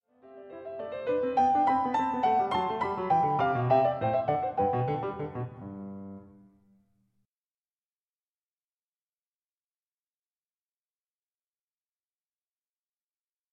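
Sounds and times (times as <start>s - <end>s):
canon at the unison for one keyboard: 1.4s - 6.5s.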